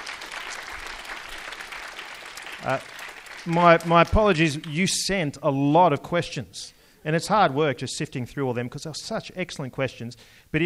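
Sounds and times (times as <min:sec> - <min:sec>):
audience applause: 0:00.0 - 0:04.2
speech: 0:02.6 - 0:10.6.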